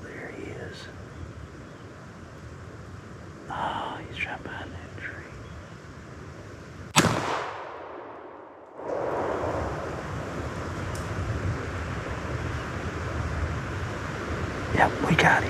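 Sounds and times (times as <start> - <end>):
steady wind noise: 0.0 - 15.4
rifle gunshot while hunting: 6.9 - 9.4.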